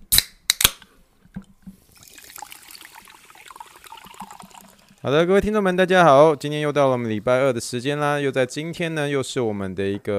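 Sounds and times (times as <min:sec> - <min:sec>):
sparkling water fizzing: 0:01.8 - 0:05.1
speech: 0:05.0 - 0:10.1.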